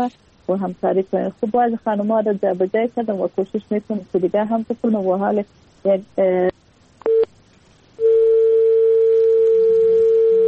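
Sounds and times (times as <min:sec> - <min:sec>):
speech: 0:00.0 - 0:06.5
telephone line tone after a call is cut off: 0:08.0 - 0:10.4.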